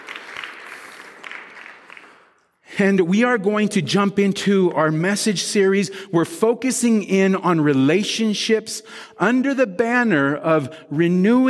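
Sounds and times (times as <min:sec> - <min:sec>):
church congregation applauding couples who renewed their wedding vows: 0:00.0 - 0:02.6
speech: 0:02.8 - 0:11.4.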